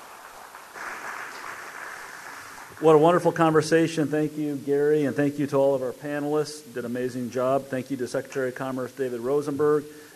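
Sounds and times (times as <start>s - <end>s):
audience applause for a panel: 0.0s - 3.0s
speech: 2.8s - 10.0s.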